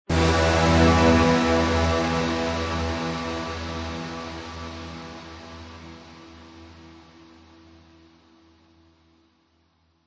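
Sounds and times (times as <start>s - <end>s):
dramatic sudden cinematic orchestral hit: 0.1s - 5.0s.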